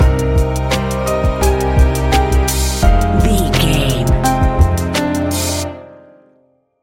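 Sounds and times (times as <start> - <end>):
relaxed chill music: 0.2 - 5.8.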